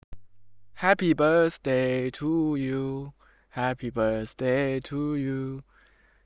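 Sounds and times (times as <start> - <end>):
person singing: 0.8 - 5.6.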